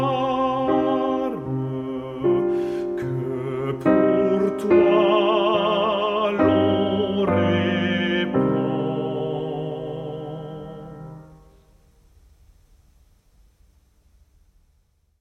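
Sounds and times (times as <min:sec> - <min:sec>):
tenor singing: 0:00.0 - 0:11.5.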